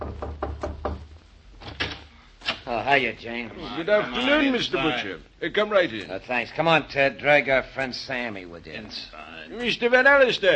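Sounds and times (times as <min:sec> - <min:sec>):
knocking on a door: 0:00.0 - 0:01.1
speech: 0:02.7 - 0:10.5.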